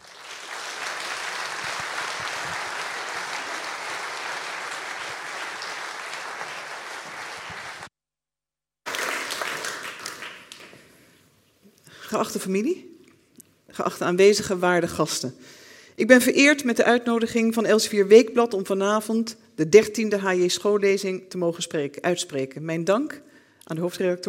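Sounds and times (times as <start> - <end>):
audience applause: 0.0 - 7.9, 8.9 - 10.9
speech: 12.1 - 12.9, 13.8 - 24.2.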